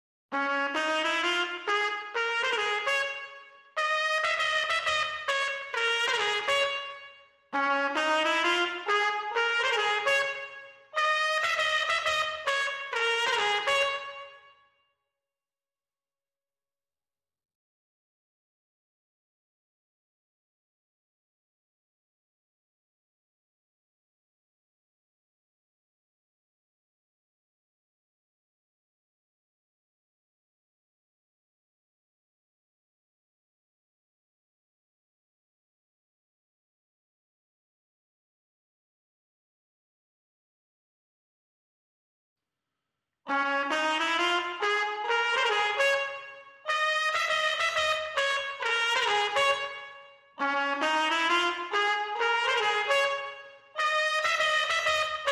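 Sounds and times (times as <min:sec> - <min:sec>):
trumpets: 0:00.3 - 0:14.5, 0:43.3 - 0:55.3.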